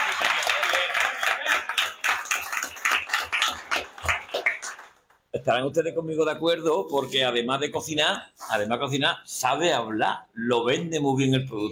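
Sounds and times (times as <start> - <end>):
audience applause: 0.0 - 5.2
speech: 5.4 - 11.7.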